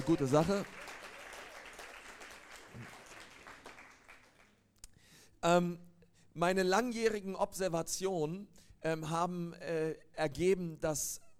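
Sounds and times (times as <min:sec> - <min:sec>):
speech: 0:00.0 - 0:00.8, 0:05.4 - 0:11.3
audience applause: 0:00.0 - 0:04.5.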